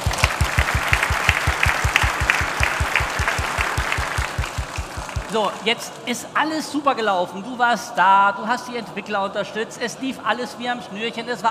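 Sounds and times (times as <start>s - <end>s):
audience applause: 0.0s - 6.1s
speech: 5.3s - 11.5s.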